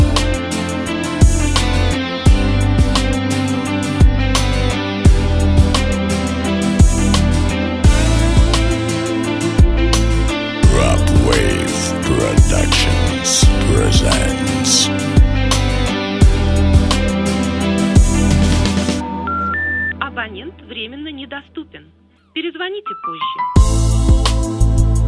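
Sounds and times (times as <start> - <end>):
light pop rock music: 0.0 - 19.9, 23.4 - 25.0.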